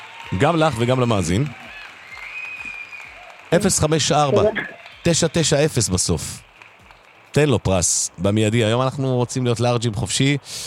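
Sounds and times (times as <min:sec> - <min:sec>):
applause: 0:00.0 - 0:09.4
speech: 0:00.3 - 0:01.6, 0:03.5 - 0:06.5, 0:07.4 - 0:10.6.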